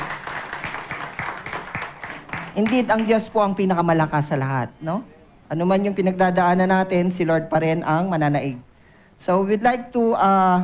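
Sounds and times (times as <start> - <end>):
audience applause: 0.0 - 3.2
speech: 2.6 - 10.6.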